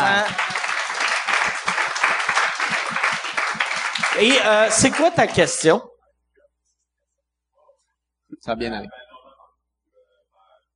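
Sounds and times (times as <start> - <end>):
audience applause: 0.0 - 5.6
speech: 0.2 - 0.5, 4.2 - 5.9, 8.4 - 9.0.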